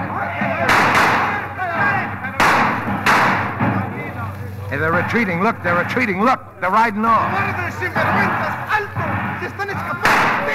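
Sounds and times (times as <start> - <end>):
agitated voices: 0.0 - 10.5
rumbling noise: 0.0 - 10.5
gunfire during bandit train raid: 0.4 - 3.9, 8.0 - 10.5
speech: 4.8 - 10.5.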